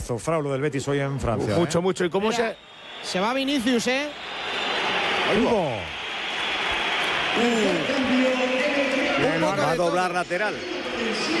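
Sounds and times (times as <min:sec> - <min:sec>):
speech: 0:00.1 - 0:04.5, 0:05.3 - 0:06.0, 0:07.4 - 0:08.0, 0:09.6 - 0:11.3
stadium crowd applauding: 0:02.1 - 0:11.3.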